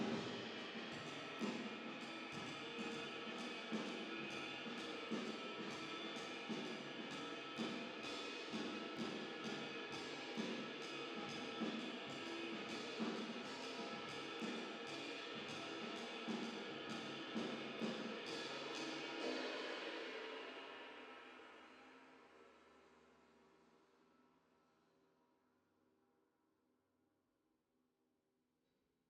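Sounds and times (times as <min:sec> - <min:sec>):
drums with reverb: 0:00.0 - 0:22.4.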